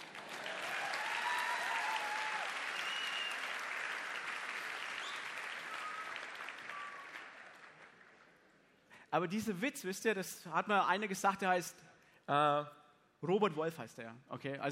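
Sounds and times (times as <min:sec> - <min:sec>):
audience applause: 0:00.0 - 0:08.5
speech: 0:09.1 - 0:14.6.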